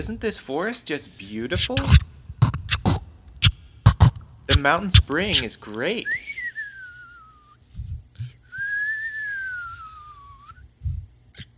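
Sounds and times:
soft low thumps: 0.0 - 0.4, 1.5 - 5.6, 7.7 - 8.4, 10.8 - 11.2
speech: 0.0 - 2.1, 4.5 - 6.4
whistled bird calls: 6.1 - 7.6, 8.6 - 10.6.

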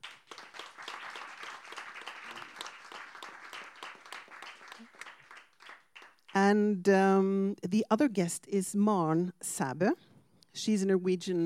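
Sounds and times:
audience applause welcoming a guest: 0.0 - 6.3
speech: 6.4 - 11.4.

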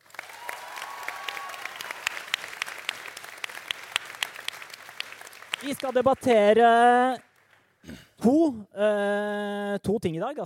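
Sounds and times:
audience applause: 0.0 - 7.4
speech: 5.6 - 10.4.

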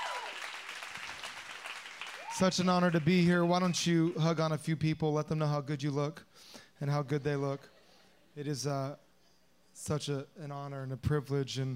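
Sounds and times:
church audience applauding and cheering: 0.0 - 4.4
speech: 2.4 - 7.8, 8.4 - 9.0, 9.8 - 11.7.

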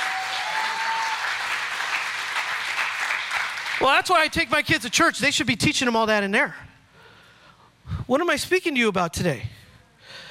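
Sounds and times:
audience hand clap: 0.0 - 4.9
speech: 3.8 - 6.6, 8.1 - 9.5.

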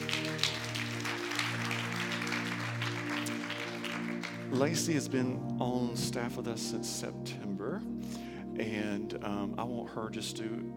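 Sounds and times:
audience applause at a church service: 0.0 - 5.0
speech: 4.5 - 7.9, 8.6 - 10.7.

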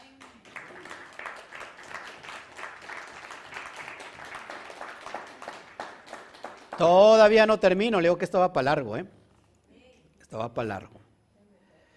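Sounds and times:
audience applause: 0.2 - 6.9
speech: 6.8 - 9.2, 10.4 - 11.0.

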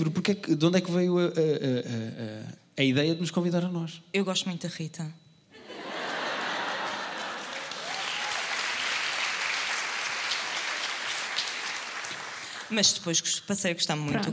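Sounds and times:
speech: 0.0 - 5.2, 12.7 - 14.3
laughter: 5.6 - 8.0
applause: 6.3 - 13.0.

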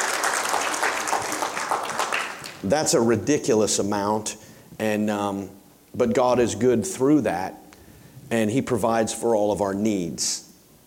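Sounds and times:
audience applauding: 0.0 - 2.6
speech: 2.6 - 7.6, 8.3 - 10.5.

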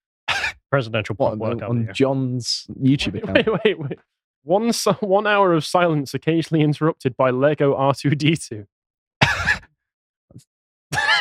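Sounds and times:
person imitating a monkey shriek: 0.3 - 0.6
speech: 0.7 - 8.8
laughter: 0.9 - 4.0, 4.6 - 5.8, 7.8 - 8.6, 11.0 - 11.2.

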